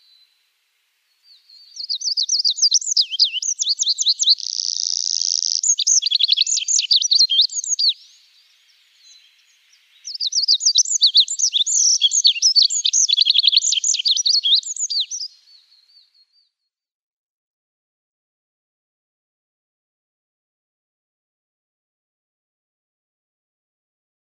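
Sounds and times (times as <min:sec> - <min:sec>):
Olive-backed Pipit singing: 0:01.2 - 0:16.2.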